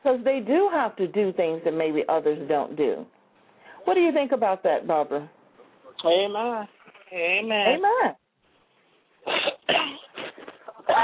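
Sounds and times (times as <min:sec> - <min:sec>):
speech: 0:00.0 - 0:03.2, 0:03.8 - 0:05.4, 0:06.0 - 0:08.2
person coughing from a cold: 0:09.2 - 0:11.0.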